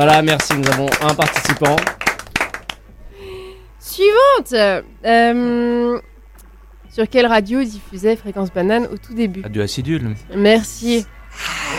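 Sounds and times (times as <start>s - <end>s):
speech: 0.0s - 1.9s, 3.9s - 6.1s, 6.9s - 11.7s
scattered clapping from a small audience: 0.0s - 2.8s
faint steady hum: 0.0s - 11.7s.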